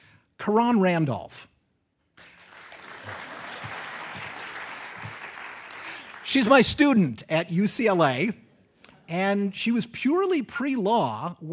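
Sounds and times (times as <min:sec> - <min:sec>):
speech: 0:00.4 - 0:01.5, 0:06.3 - 0:08.4, 0:09.1 - 0:11.5
audience applause: 0:02.2 - 0:06.6.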